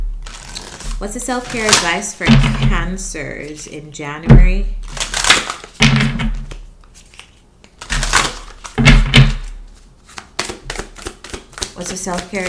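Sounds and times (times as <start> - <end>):
tarot cards being shuffled: 0.2 - 2.7, 4.8 - 12.4
speech: 1.0 - 4.9, 11.8 - 12.4
tarot deck thumping: 1.4 - 3.0, 5.2 - 12.4.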